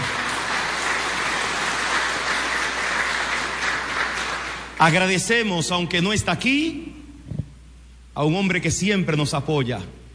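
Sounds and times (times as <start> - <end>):
crowd applause: 0.0 - 5.0
speech: 4.8 - 6.9, 8.2 - 10.0.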